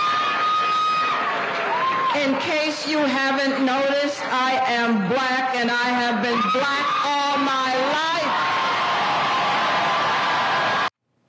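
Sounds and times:
crowd cheering wildly: 0.0 - 2.7, 6.3 - 10.9
speech: 2.2 - 8.7.

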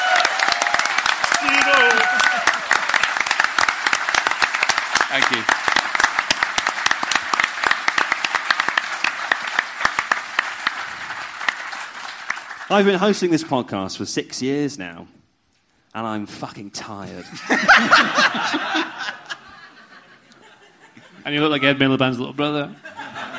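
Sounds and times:
audience round of applause: 0.0 - 13.2
speech: 5.1 - 5.6, 12.7 - 15.2, 15.9 - 19.1, 21.2 - 22.9
laughter: 17.1 - 21.8, 22.8 - 23.3.

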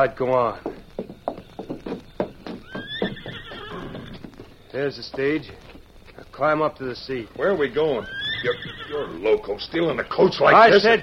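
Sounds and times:
speech: 0.0 - 0.7, 4.7 - 5.7, 6.4 - 11.0
hooves clip-clopping: 0.0 - 11.0
horse whinnying: 2.5 - 4.6, 7.8 - 9.4.

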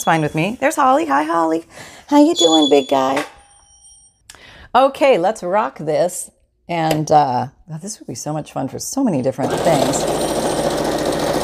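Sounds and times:
speech: 0.0 - 3.4, 4.7 - 10.4
sewing machine stitching fast: 9.4 - 11.4.

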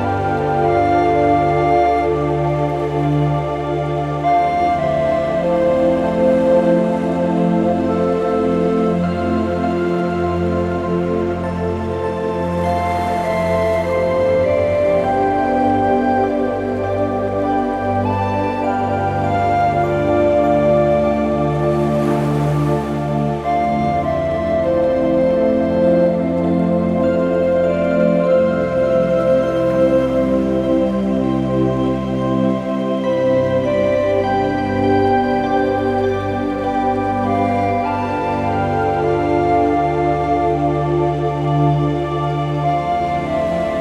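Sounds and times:
gentle ocean noise: 0.0 - 43.7
slow peaceful sleep music: 0.0 - 43.7.

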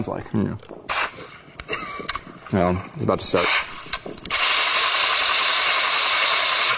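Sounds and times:
speech: 0.0 - 0.8, 2.5 - 4.2
machine gun automatic fire: 3.4 - 6.7.

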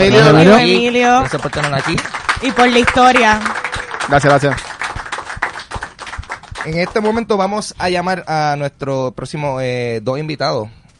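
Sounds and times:
speech: 0.0 - 4.7, 6.6 - 10.8
audience applause: 0.0 - 7.3.

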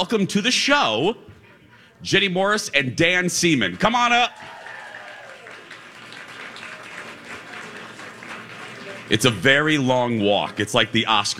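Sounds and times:
speech: 0.0 - 1.3, 2.0 - 4.6, 9.1 - 11.3
audience clapping: 3.5 - 9.9.

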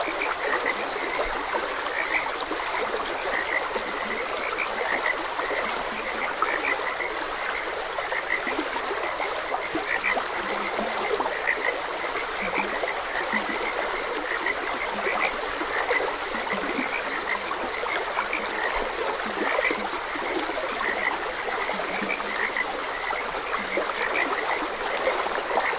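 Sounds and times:
frogs croaking: 0.0 - 25.7
stream water rushing: 0.0 - 25.7.

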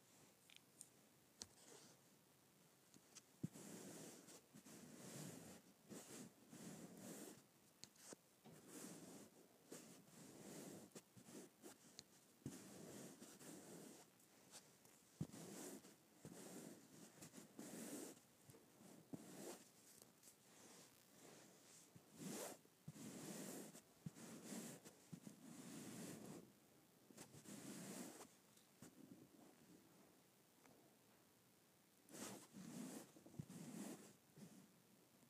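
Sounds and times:
hand or object rubbing across a smooth carpet: 3.4 - 7.4, 8.0 - 26.4, 27.2 - 28.4, 32.1 - 34.5.

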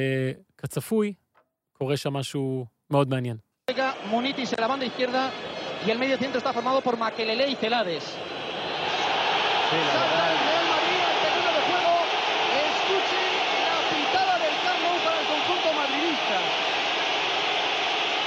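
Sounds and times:
speech: 0.0 - 1.2, 1.8 - 8.3, 9.7 - 10.5
stadium crowd booing and whistling: 3.7 - 18.2.

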